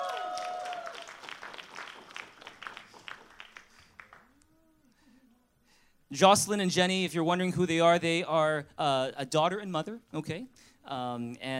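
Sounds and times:
audience applause at a Thanksgiving Sunday gathering: 0.0 - 4.4
speech: 6.1 - 11.5.

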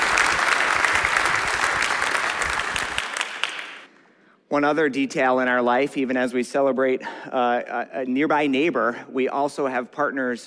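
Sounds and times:
church congregation applauding a welcomed guest: 0.0 - 3.9
speech: 4.5 - 10.4.

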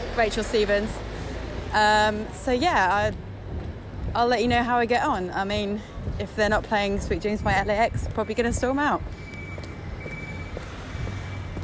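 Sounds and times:
constant low rumble of traffic: 0.0 - 11.6
speech: 0.2 - 1.1, 1.7 - 3.2, 4.1 - 9.2
boots clomping down a street: 2.7 - 4.8, 5.4 - 11.6.

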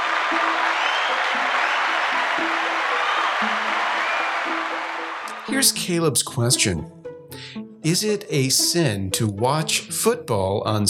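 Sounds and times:
audience applause: 0.0 - 5.7
speech: 0.3 - 0.6, 5.5 - 10.8.

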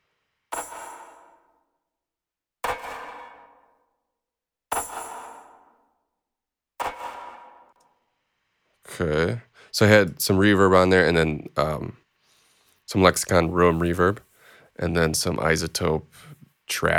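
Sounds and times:
processed tambourine hits: 0.5 - 1.6, 4.7 - 5.8
speech: 9.0 - 12.0, 12.9 - 16.9.

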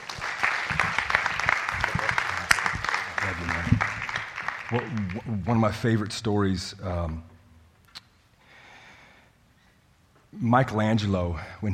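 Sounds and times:
audience applause: 0.0 - 5.6
speech: 4.7 - 7.3, 10.4 - 11.7.

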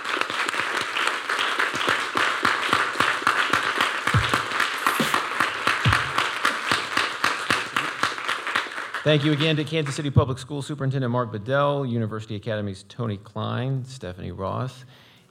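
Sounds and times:
audience applause for panelists: 0.0 - 9.9
speech: 9.1 - 15.0.

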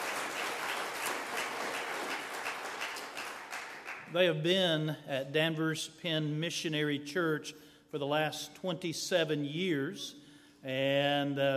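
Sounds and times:
audience hand clapping: 0.0 - 4.2
speech: 4.1 - 11.5.

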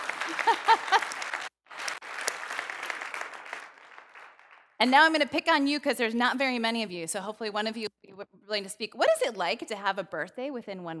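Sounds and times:
laughter: 0.0 - 2.6
audience applause: 0.0 - 5.0
speech: 0.4 - 0.8, 4.8 - 10.9.

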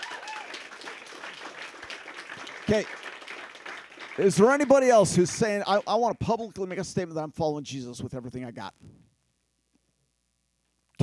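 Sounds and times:
crowd applauding: 0.0 - 6.9
speech: 2.7 - 3.0, 4.2 - 9.0.

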